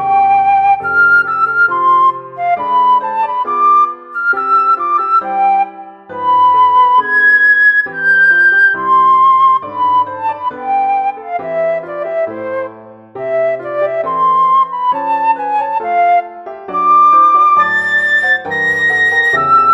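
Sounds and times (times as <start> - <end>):
flute: 0.0 - 19.7
piano: 0.0 - 19.7.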